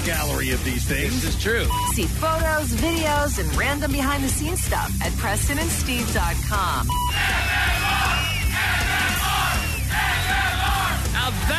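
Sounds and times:
speech: 0.0s - 8.2s
large crowd cheering and yelling: 7.1s - 11.5s.

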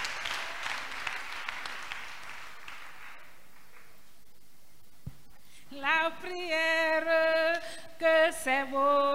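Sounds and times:
audience clapping: 0.0s - 4.1s
speech: 6.1s - 6.8s, 8.3s - 9.0s.

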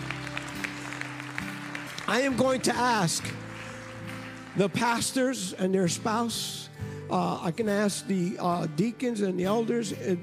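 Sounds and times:
audience applauding: 0.0s - 5.6s
speech: 2.1s - 3.4s, 4.6s - 10.2s.

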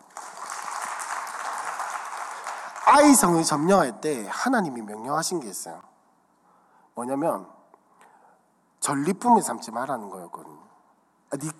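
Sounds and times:
audience applauding: 0.0s - 3.6s
speech: 2.9s - 5.9s, 7.0s - 7.6s, 8.8s - 10.7s, 11.3s - 11.5s.

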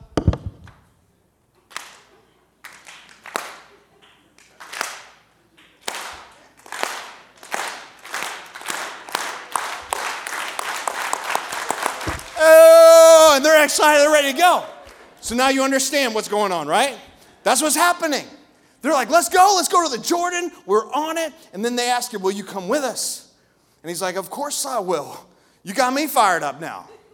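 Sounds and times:
slow clap: 1.6s - 12.8s
speech: 13.5s - 23.2s, 23.8s - 27.0s.

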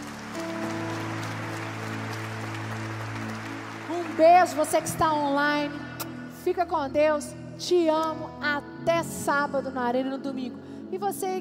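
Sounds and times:
audience clapping: 0.0s - 6.2s
sustained low keyboard chord: 0.0s - 8.9s
speech: 4.2s - 11.3s.

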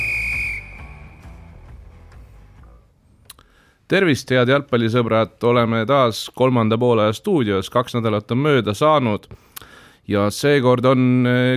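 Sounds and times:
referee's final whistle in football: 0.0s - 1.5s
speech: 3.9s - 9.5s, 10.1s - 11.5s.

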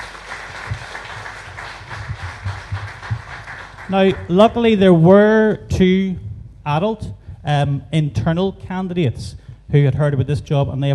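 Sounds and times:
audience applause: 0.0s - 4.4s
low thumps in the room: 0.7s - 10.9s
speech: 3.9s - 10.9s.

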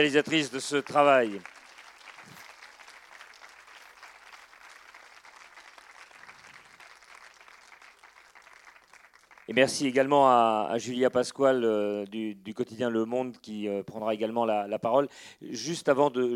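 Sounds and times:
speech: 0.0s - 1.6s, 9.5s - 16.3s
audience applause: 0.0s - 9.6s.

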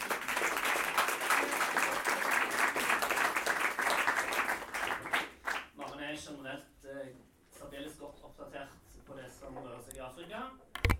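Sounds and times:
audience applause: 0.0s - 5.7s
speech: 7.1s - 10.7s.

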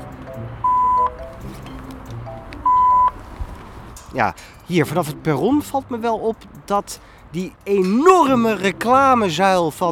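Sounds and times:
transit card reader check-in beeps: 0.6s - 1.2s, 2.6s - 3.2s
speech: 4.1s - 9.9s.

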